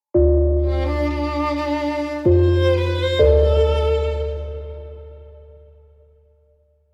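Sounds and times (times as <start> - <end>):
violin: 0.6 - 6.0.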